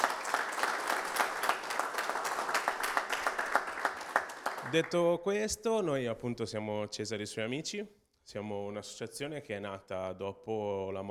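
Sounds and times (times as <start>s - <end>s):
audience applause: 0.0s - 5.0s
speech: 4.7s - 11.0s.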